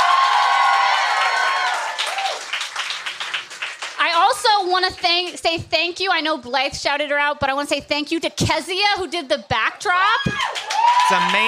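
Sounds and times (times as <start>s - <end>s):
audience cheers and whoops: 0.0s - 2.6s, 10.0s - 11.4s
live audience applause: 0.0s - 4.4s, 10.4s - 11.4s
speech: 4.6s - 11.4s.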